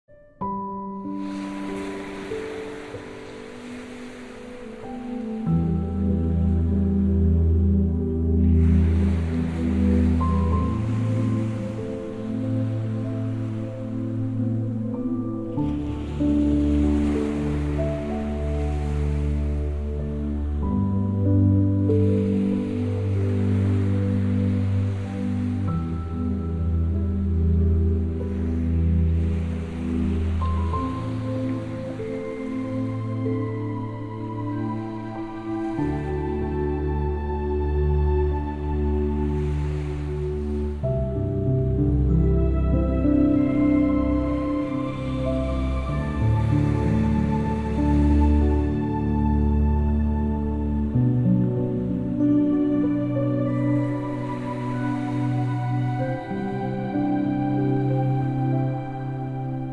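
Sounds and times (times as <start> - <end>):
relaxing sleep music: 0.0 - 59.7.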